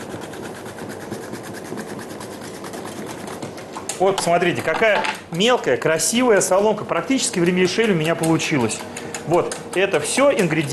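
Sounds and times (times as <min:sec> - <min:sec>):
zucchini being cut on a julienne grater: 0:00.0 - 0:03.7, 0:06.4 - 0:10.7
speech: 0:04.0 - 0:10.7.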